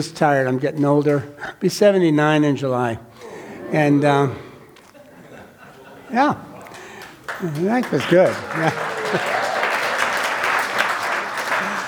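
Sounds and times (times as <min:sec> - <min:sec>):
speech: 0:00.0 - 0:04.5, 0:06.1 - 0:06.5, 0:07.4 - 0:09.4
laughter: 0:03.2 - 0:11.8
crowd applause: 0:06.5 - 0:11.8.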